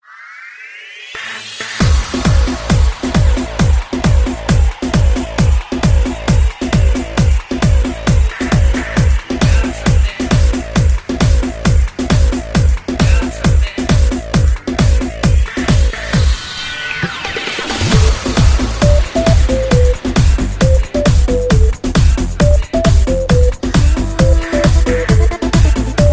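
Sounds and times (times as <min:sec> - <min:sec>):
hard music: 0:00.7 - 0:26.1.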